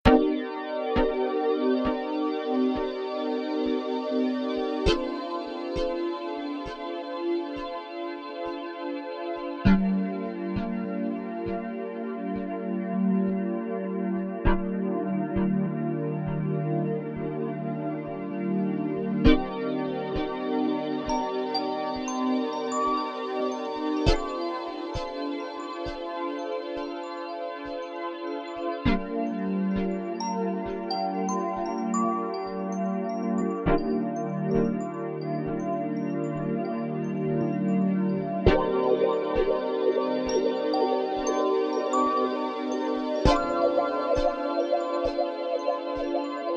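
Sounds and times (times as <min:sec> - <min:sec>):
magical instrumental music 432 hz: 0:00.2 - 0:46.5.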